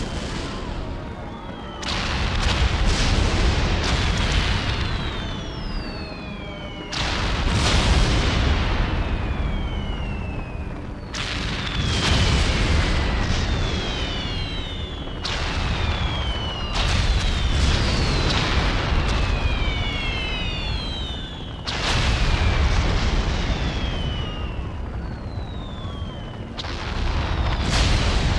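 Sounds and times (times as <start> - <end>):
air raid alarm: 0.0 - 28.3.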